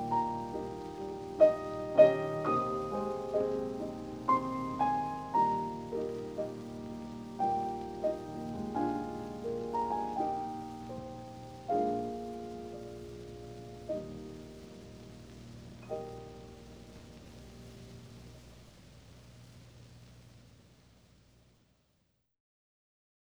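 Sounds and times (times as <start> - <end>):
lullaby: 0.0 - 17.8.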